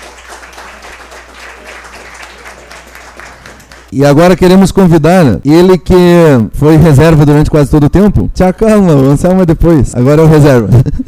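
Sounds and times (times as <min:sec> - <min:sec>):
audience applause: 0:00.0 - 0:03.9
speech: 0:03.9 - 0:11.0.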